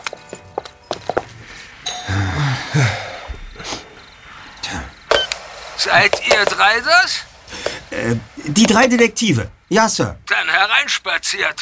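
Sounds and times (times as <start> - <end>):
doorbell ringing: 1.8 - 3.3
speech: 5.8 - 7.3, 8.0 - 11.6.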